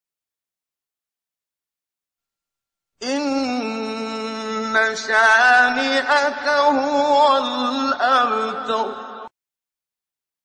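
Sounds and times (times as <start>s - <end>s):
recitation of a holy surah: 3.0s - 9.3s.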